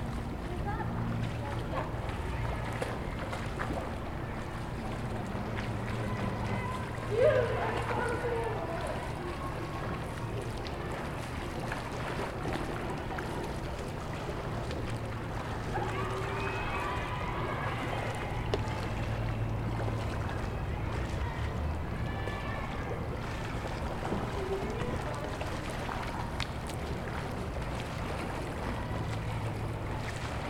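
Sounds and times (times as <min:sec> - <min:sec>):
pool: 0:00.0 - 0:30.4.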